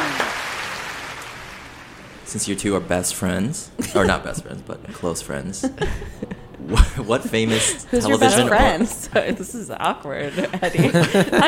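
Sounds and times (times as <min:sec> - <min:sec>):
polite applause sound effect: 0:00.0 - 0:01.9
speech: 0:02.3 - 0:11.4
laughter: 0:03.8 - 0:11.4.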